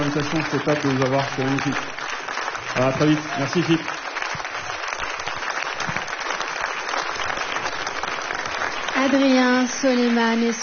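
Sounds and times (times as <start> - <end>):
speech: 0.0 - 2.0, 2.8 - 4.0, 9.0 - 10.6
audience applauding: 0.0 - 10.6.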